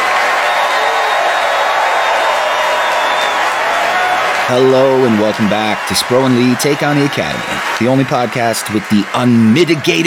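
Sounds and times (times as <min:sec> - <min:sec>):
round of applause: 0:00.0 - 0:10.0
speech: 0:04.5 - 0:10.0.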